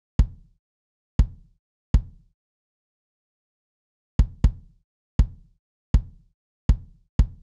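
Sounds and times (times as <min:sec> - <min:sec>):
kick drum: 0:00.2 - 0:00.6, 0:01.2 - 0:02.3, 0:04.2 - 0:07.4.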